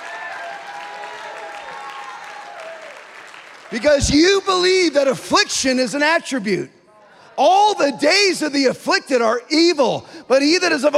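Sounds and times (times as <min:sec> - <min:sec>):
audience clapping: 0:00.0 - 0:04.4
speech: 0:03.7 - 0:06.8, 0:07.4 - 0:10.9.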